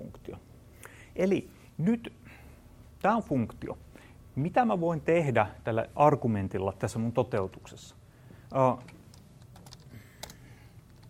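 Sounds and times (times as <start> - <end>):
speech: 1.2 - 2.2, 3.0 - 3.8, 4.4 - 9.0
computer keyboard typing while code is written: 9.1 - 11.0.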